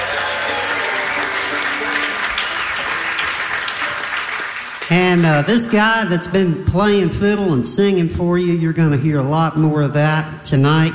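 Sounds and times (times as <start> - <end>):
concert audience applause for the sound engineer: 0.0 - 5.7
speech: 4.9 - 10.9.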